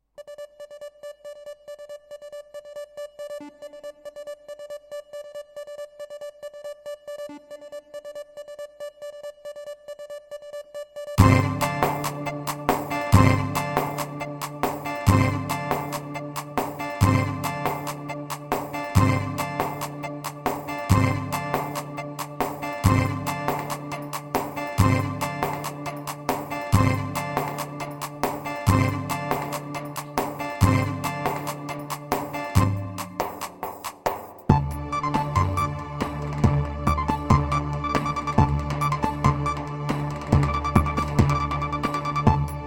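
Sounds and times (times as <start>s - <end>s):
PA-500 Turkish Roman rhythm: 11.2s - 42.6s.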